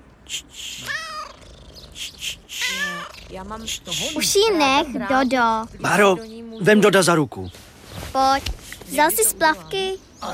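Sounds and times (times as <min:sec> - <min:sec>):
speech: 0:00.3 - 0:01.2, 0:02.0 - 0:07.6, 0:08.2 - 0:10.3
cat meowing: 0:00.8 - 0:01.4, 0:02.5 - 0:04.2.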